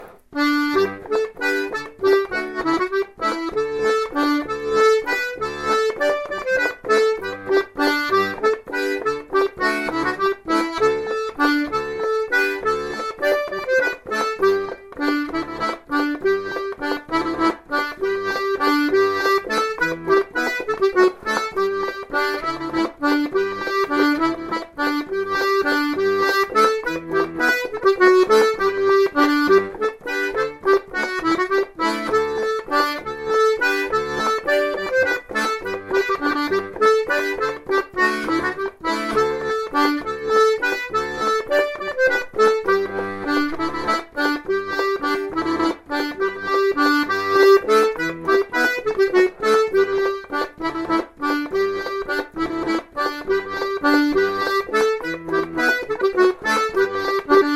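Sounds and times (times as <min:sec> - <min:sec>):
accordion playing a bourree: 0:00.0 - 0:57.5.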